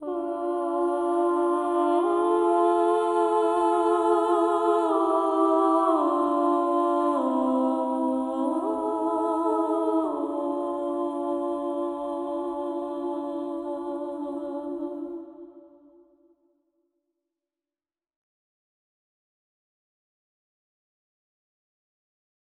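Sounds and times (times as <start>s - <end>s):
singer interlude: 0.0s - 15.5s.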